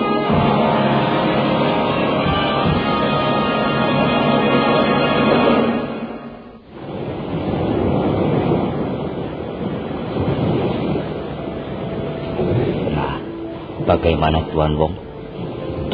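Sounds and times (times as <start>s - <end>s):
waves breaking on a beach shore: 0.0s - 15.9s
speech: 14.0s - 15.0s.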